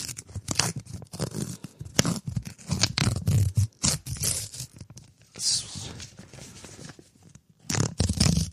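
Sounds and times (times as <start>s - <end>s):
envelope being ripped open by hand: 0.0s - 5.0s, 7.6s - 8.5s.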